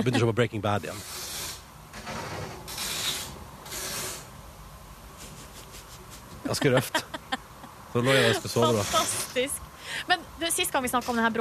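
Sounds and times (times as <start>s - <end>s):
laughter: 0.0s - 0.3s, 5.2s - 8.8s
speech: 0.0s - 1.3s, 6.5s - 7.3s, 7.9s - 11.4s
someone taping something with adhesive tape: 1.0s - 4.3s.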